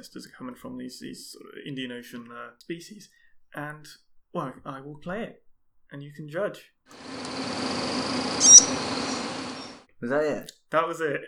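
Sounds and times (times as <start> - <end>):
speech: 0.0 - 7.2, 8.1 - 9.2, 10.0 - 11.2
steady hiss: 7.0 - 9.8
purple frog squeaking: 7.2 - 9.8.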